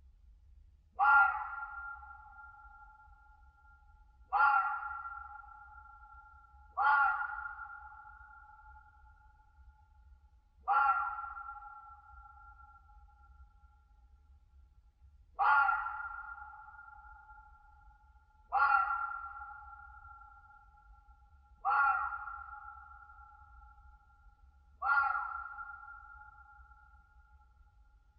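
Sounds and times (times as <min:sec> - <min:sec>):
red fox screaming in winter in a European mountain forest: 0:01.0 - 0:02.0, 0:04.3 - 0:05.3, 0:06.8 - 0:07.9, 0:10.7 - 0:11.5, 0:15.4 - 0:16.9, 0:18.5 - 0:19.9, 0:21.6 - 0:22.8, 0:24.8 - 0:26.2.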